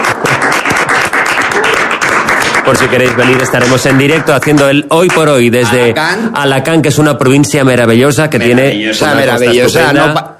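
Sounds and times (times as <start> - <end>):
audience applause: 0.0 - 5.7
speech: 2.7 - 10.3.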